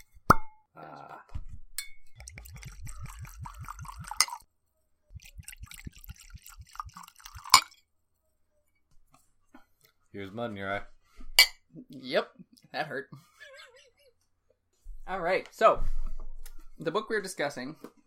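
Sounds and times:
liquid glugging out of a glass bottle: 0:02.2 - 0:04.4, 0:05.2 - 0:07.7
glass clink: 0:07.1 - 0:07.8, 0:11.4 - 0:11.6
speech: 0:10.2 - 0:10.9, 0:11.9 - 0:13.3, 0:15.1 - 0:16.0, 0:16.8 - 0:17.9.

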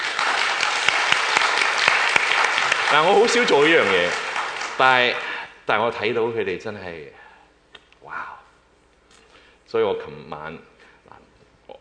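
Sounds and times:
applause: 0:00.0 - 0:05.5
speech: 0:02.9 - 0:04.2, 0:04.8 - 0:07.2, 0:09.7 - 0:10.7.

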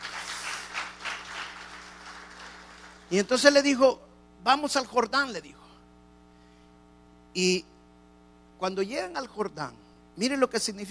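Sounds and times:
audience applauding: 0:00.0 - 0:03.2
speech: 0:03.1 - 0:05.6, 0:07.4 - 0:07.7, 0:08.6 - 0:10.9.

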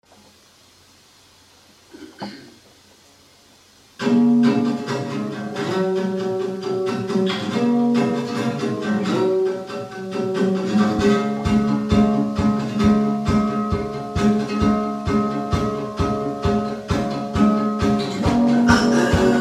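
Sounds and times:
lo-fi music: 0:04.0 - 0:19.3.

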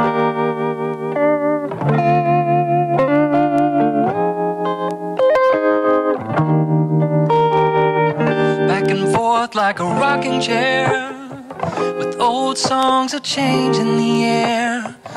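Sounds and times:
music track: 0:00.0 - 0:15.1
speech: 0:09.6 - 0:11.0, 0:12.3 - 0:15.1.

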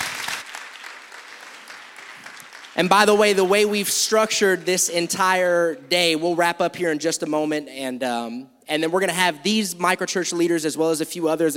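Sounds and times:
audience applause: 0:00.0 - 0:04.8
speech: 0:02.8 - 0:11.5.

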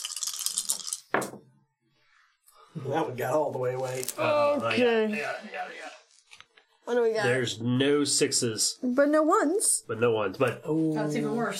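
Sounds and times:
dice rattling and clattering: 0:00.0 - 0:01.2
speech: 0:02.8 - 0:05.9, 0:06.9 - 0:11.5.

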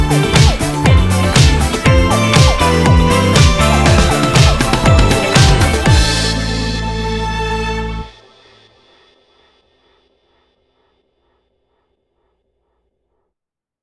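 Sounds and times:
disco music: 0:00.0 - 0:08.4.

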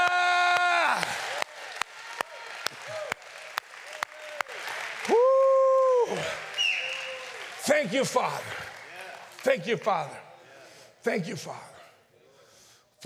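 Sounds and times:
audience clapping: 0:00.0 - 0:10.2
speech: 0:07.8 - 0:08.6, 0:09.4 - 0:10.2, 0:11.0 - 0:11.7.

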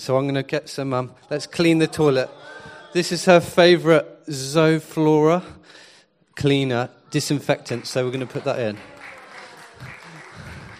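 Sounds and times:
speech: 0:00.0 - 0:05.8, 0:06.4 - 0:08.9
people clapping: 0:07.4 - 0:10.7.

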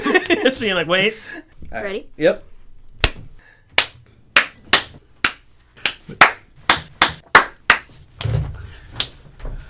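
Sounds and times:
speech: 0:00.4 - 0:02.5
hands clapping: 0:03.8 - 0:08.0, 0:09.0 - 0:09.2.

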